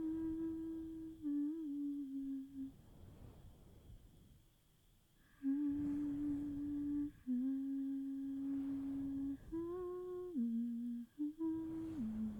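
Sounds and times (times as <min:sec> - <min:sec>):
person humming: 0:00.0 - 0:02.8, 0:05.4 - 0:12.3.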